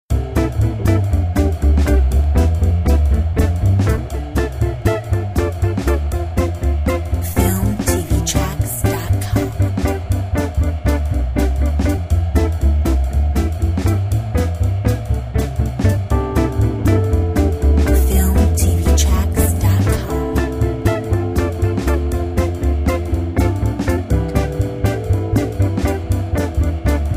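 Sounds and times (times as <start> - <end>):
swing music: 0.1 - 27.1.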